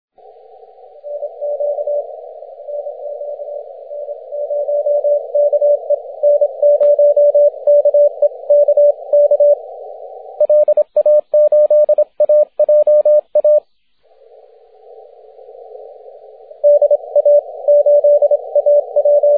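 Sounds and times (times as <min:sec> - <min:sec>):
6m CW morse code signal: 0:01.0 - 0:09.6, 0:10.4 - 0:13.6, 0:16.6 - 0:19.3.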